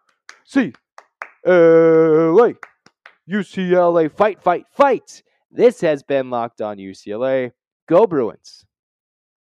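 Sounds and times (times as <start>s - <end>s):
hands clapping: 0.0s - 3.6s
speech: 0.5s - 0.8s, 1.4s - 2.7s, 3.3s - 8.7s
people calling out: 1.5s - 2.6s.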